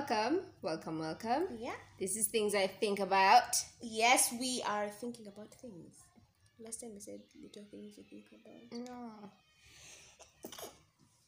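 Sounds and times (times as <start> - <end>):
speech: 0.1 - 9.4
sneeze: 10.2 - 11.2.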